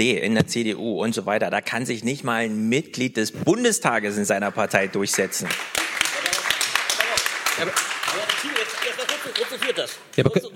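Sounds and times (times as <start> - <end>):
speech: 0.0 - 6.1, 7.6 - 8.5, 9.2 - 10.5
crowd applause: 4.6 - 10.2.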